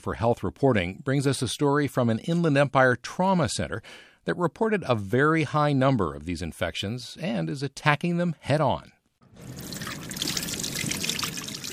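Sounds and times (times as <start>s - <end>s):
speech: 0.0s - 9.7s
tap water running over hands at a hospital trauma center: 9.4s - 11.7s.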